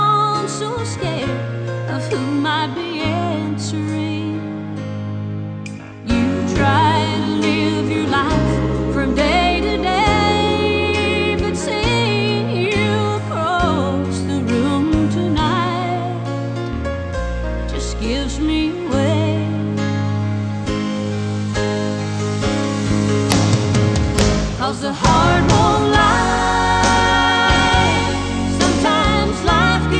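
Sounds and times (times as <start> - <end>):
country music: 0.0 - 29.9.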